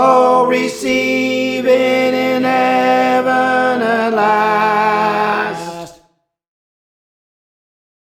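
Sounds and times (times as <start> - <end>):
tenor voice singing a training part: 0.0 - 6.0.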